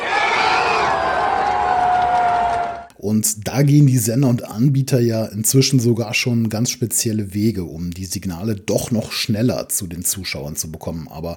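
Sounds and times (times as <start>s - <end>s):
football crowd cheering a goal: 0.0s - 2.9s
speech: 3.1s - 11.3s.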